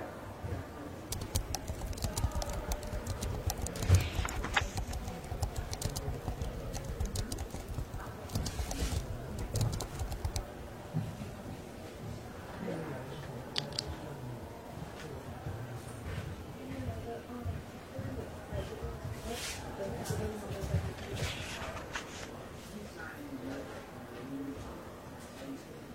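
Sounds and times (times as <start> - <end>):
murmur of voices in a library: 0.0 - 25.9
pages turning in a library: 1.1 - 10.3
typing and writing clicks in a library: 1.1 - 10.5.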